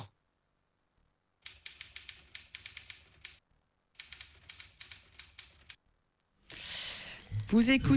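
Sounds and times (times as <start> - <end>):
typewriter keystrokes: 1.5 - 5.8
speech: 7.5 - 7.9.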